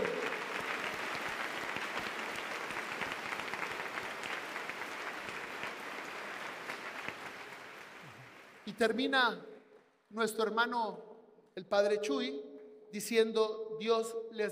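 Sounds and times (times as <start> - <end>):
audience applause: 0.0 - 8.7
speech: 8.8 - 9.5, 10.1 - 14.5.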